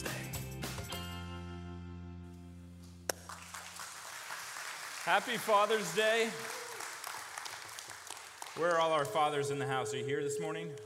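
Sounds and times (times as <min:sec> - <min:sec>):
audience clapping: 0:02.8 - 0:09.6
speech: 0:05.1 - 0:06.6, 0:08.6 - 0:10.8.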